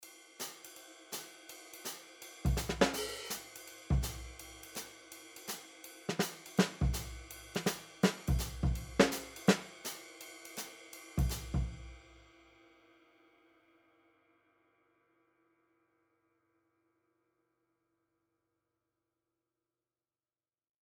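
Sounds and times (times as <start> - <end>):
modern jazz drumming with sticks: 0.4 - 12.1.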